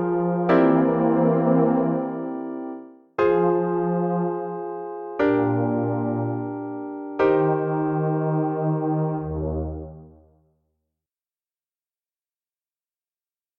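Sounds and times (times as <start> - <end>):
musical accompaniment: 0.0 - 10.2.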